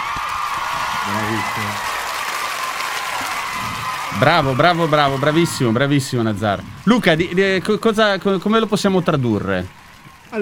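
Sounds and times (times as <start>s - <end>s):
crowd applauding: 0.0s - 10.4s
speech: 1.0s - 1.9s, 4.1s - 10.4s.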